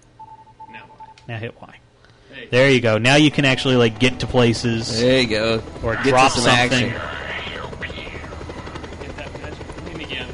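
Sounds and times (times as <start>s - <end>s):
speech: 0.8s - 7.2s
plane engine drone in a video game: 3.2s - 10.3s.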